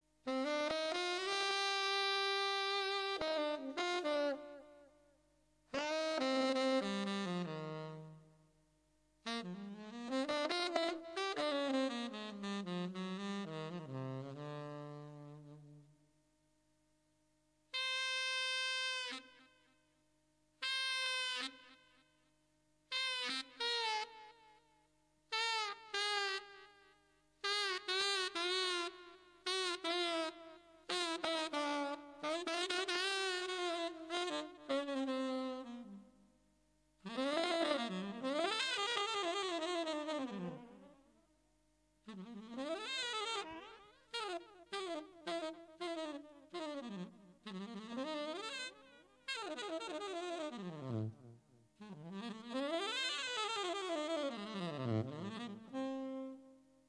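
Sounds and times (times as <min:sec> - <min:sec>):
saxophone solo: 0:00.2 - 0:08.6, 0:09.2 - 0:16.1, 0:17.7 - 0:19.9, 0:20.6 - 0:36.4, 0:37.0 - 0:41.4, 0:42.0 - 0:56.8.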